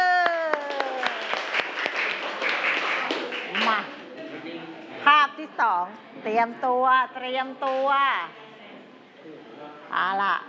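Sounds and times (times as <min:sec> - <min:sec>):
class clapping together: 0:00.0 - 0:04.0
speech: 0:05.6 - 0:08.4, 0:09.9 - 0:10.4.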